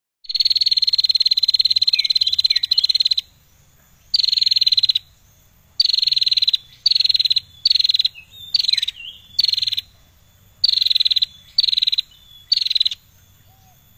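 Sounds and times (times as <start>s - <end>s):
bar-winged prinia giving short buzzy chattering phrases: 0.3s - 13.9s.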